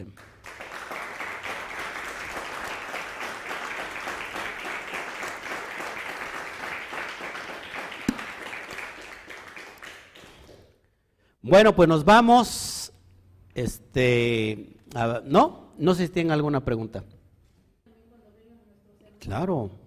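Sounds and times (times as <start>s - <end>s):
speech: 0.0s - 0.3s, 11.5s - 12.7s, 13.6s - 17.1s, 19.2s - 19.8s
audience applause: 0.0s - 10.6s.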